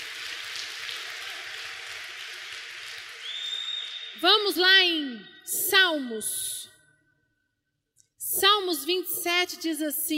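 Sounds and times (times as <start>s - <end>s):
audience applause: 0.0s - 4.1s
speech: 4.2s - 6.6s, 8.4s - 10.1s.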